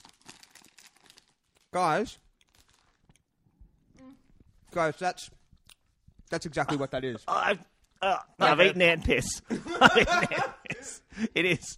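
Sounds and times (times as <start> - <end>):
wrapped pack of ant bonbons crinkling and tearing open: 0.0 - 3.2
speech: 1.7 - 2.2, 4.7 - 5.4, 6.3 - 11.7
laughter: 9.4 - 11.6.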